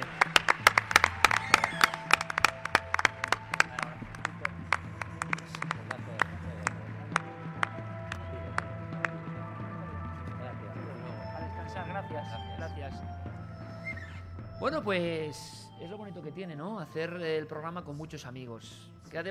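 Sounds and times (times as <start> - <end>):
audience applause: 0.0 - 9.3
low murmur: 0.0 - 17.0
speech: 14.8 - 15.6, 16.3 - 19.3.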